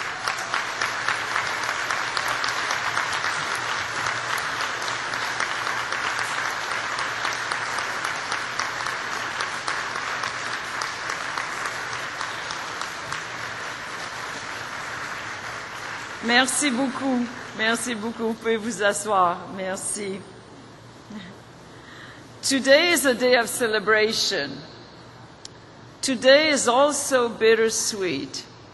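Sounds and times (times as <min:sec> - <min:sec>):
audience applause: 0:00.0 - 0:16.4
speech: 0:16.3 - 0:20.4, 0:22.5 - 0:24.8, 0:26.1 - 0:28.5.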